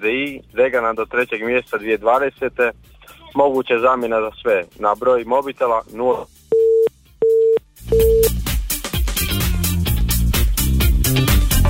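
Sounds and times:
speech: 0.1s - 6.4s, 7.9s - 8.5s
busy tone on a phone line after a dropped call-in connection: 6.5s - 8.3s
loud music: 7.8s - 11.6s.

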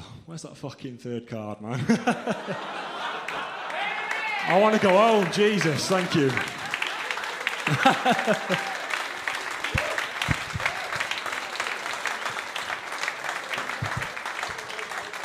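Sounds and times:
speech: 0.3s - 2.9s, 4.5s - 6.6s, 7.7s - 8.7s
laughter: 1.7s - 15.2s
game show audience applauding a contestant: 2.4s - 15.2s.

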